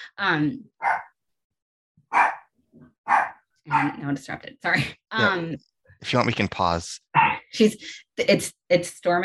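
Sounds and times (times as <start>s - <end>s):
speech: 0.1s - 1.1s, 3.1s - 9.2s
dog barking: 0.8s - 1.1s, 2.1s - 2.5s, 3.1s - 4.0s.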